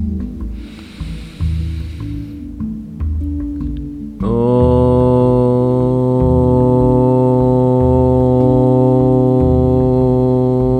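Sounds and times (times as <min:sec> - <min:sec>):
soft music with low tones: 0:00.0 - 0:10.7
person inhaling deeply: 0:00.5 - 0:02.7.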